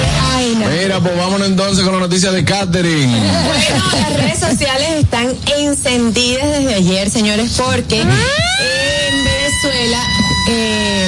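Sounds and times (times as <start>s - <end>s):
speech: 0.7s - 11.0s
fire engine siren wailing: 7.9s - 11.0s.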